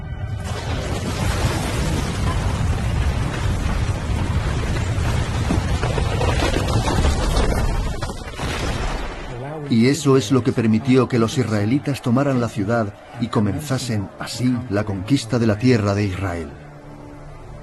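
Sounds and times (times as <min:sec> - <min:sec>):
walls collapsing: 0:00.4 - 0:09.5
speech: 0:09.7 - 0:16.6.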